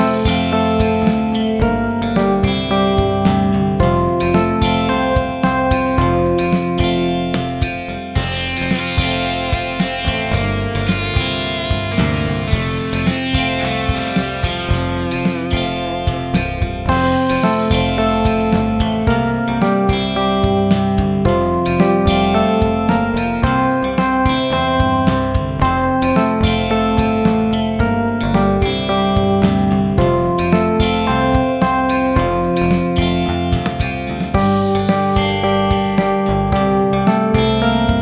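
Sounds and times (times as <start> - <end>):
backing track in F major: 0.0 - 38.0.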